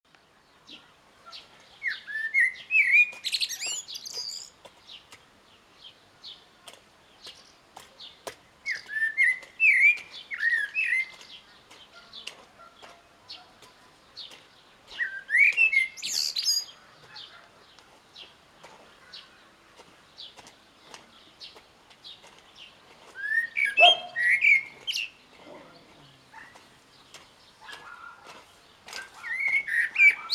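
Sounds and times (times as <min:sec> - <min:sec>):
faint chirps of other birds: 0:00.4 - 0:30.3
common blackbird fluted whistle song: 0:01.8 - 0:04.6, 0:08.6 - 0:11.3, 0:14.9 - 0:17.3, 0:23.2 - 0:25.2, 0:29.0 - 0:30.3.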